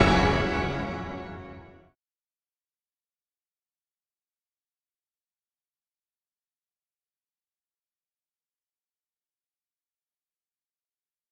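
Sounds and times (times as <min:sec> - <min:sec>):
percussion: 0:00.0 - 0:01.6.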